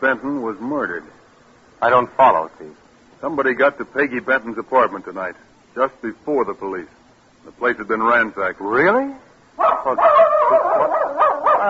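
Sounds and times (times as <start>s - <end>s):
speech: 0.0s - 1.2s, 1.8s - 11.2s
dog whining and yipping: 9.6s - 11.6s.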